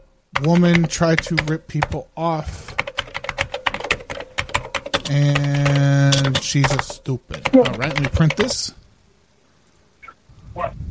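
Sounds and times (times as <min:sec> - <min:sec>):
typing on a computer keyboard: 0:00.0 - 0:02.0, 0:02.7 - 0:08.7
speech: 0:00.4 - 0:02.8, 0:05.1 - 0:08.8.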